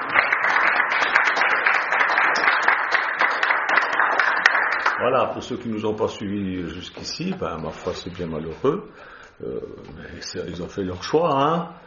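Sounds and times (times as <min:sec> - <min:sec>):
crowd applauding: 0:00.0 - 0:05.5
speech: 0:05.0 - 0:11.8.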